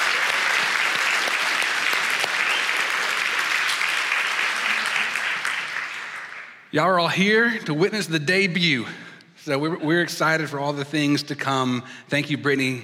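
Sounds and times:
audience applause: 0.0s - 6.7s
speech: 6.7s - 12.8s.

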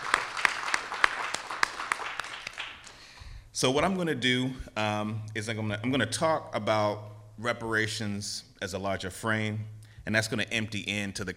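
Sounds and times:
audience applause: 0.0s - 3.0s
speech: 3.6s - 11.3s.

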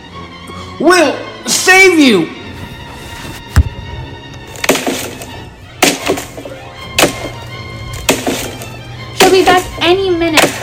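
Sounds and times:
speech: 0.8s - 2.4s
axe chopping down a door: 4.6s - 9.6s, 10.4s - 10.6s.

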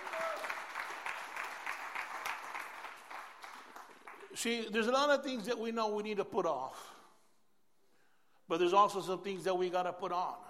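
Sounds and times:
crowd of people clapping: 0.0s - 4.5s
speech: 4.4s - 7.0s, 8.5s - 10.4s.

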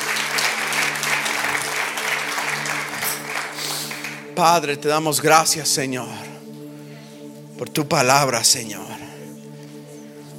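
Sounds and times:
audience applause: 0.0s - 4.3s
speech: 4.4s - 6.4s, 7.6s - 9.1s.

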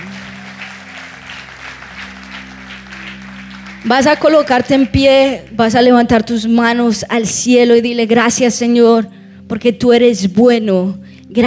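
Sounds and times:
crowd applauding: 0.0s - 5.9s
speech: 3.8s - 11.4s.

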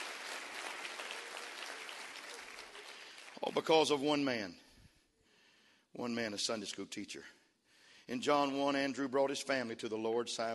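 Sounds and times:
audience clapping hands: 0.0s - 3.9s
speech: 3.4s - 4.6s, 6.0s - 7.4s, 8.1s - 10.5s.

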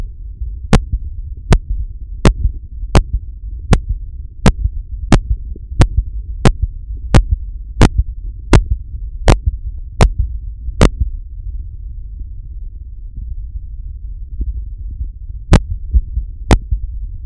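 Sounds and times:
low steady rumble: 0.0s - 17.2s
irregular slow heartbeat through a stethoscope: 0.4s - 11.2s, 14.4s - 17.0s.

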